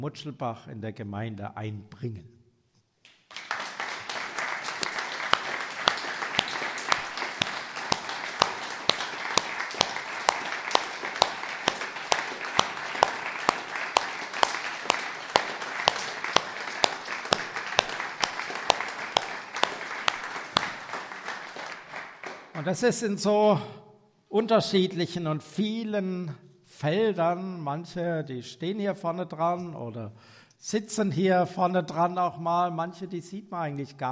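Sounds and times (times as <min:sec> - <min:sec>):
speech: 0:00.0 - 0:02.4, 0:22.7 - 0:34.1
audience applause: 0:03.3 - 0:22.7.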